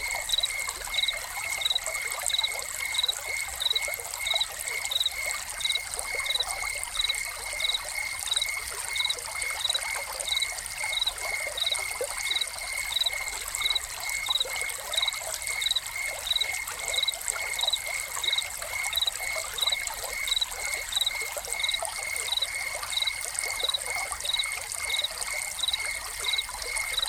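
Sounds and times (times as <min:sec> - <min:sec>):
crickets chirping: 0:00.0 - 0:27.0
water trickling and splashing from a fountain: 0:00.0 - 0:27.0.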